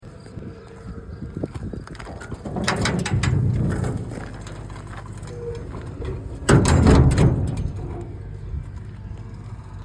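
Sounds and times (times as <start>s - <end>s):
entrance gate: 2.1s - 8.7s.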